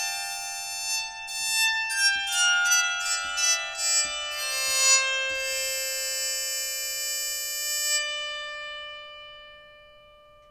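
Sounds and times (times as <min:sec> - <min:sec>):
soprano bowed psaltery melody: 0:00.0 - 0:10.4.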